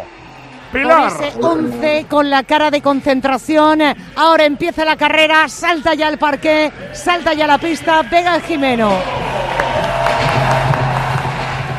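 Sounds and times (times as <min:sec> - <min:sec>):
speech: 0:00.0 - 0:09.2
crowd cheering for an athlete: 0:08.5 - 0:11.7
scattered clapping: 0:09.4 - 0:11.7.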